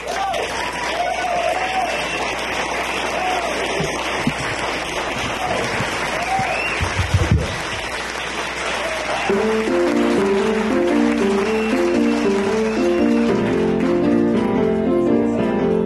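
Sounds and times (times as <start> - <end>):
whoops and shouts: 0.0 - 2.2, 5.4 - 6.9
crowd applauding: 0.0 - 15.8.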